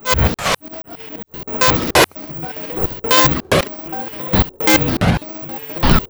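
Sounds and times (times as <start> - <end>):
machine running: 1.6 - 6.0.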